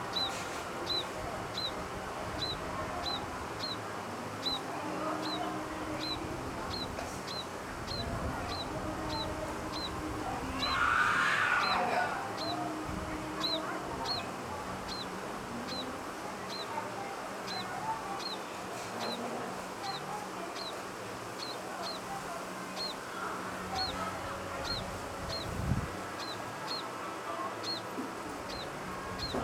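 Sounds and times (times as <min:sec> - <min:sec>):
Scaly-breasted Munia Lonchura punctulata topela calling: 0:00.1 - 0:03.8, 0:04.4 - 0:29.4.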